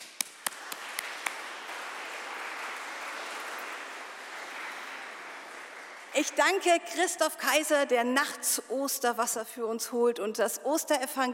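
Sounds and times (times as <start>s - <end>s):
audience applause: 0.0s - 6.4s
speech: 6.2s - 11.3s.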